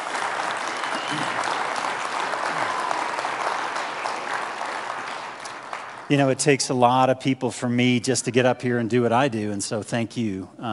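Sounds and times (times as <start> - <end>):
church congregation clapping for volunteers at an Advent service: 0.0 - 6.6
speech: 6.1 - 10.7.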